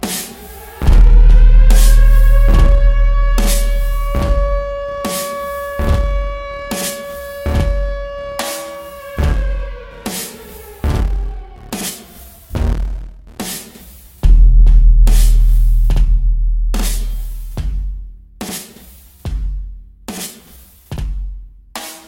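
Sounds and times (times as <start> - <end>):
808 bass: 0.6 - 5.0, 5.8 - 6.6, 7.5 - 8.0, 9.2 - 9.8, 10.8 - 11.8, 12.5 - 13.4, 14.2 - 18.1.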